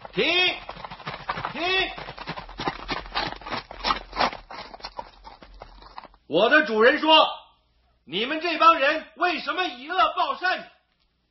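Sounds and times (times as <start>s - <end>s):
horse hooves clip-clopping: 0.0s - 6.3s
speech: 0.2s - 0.5s, 6.3s - 7.4s, 8.1s - 10.8s.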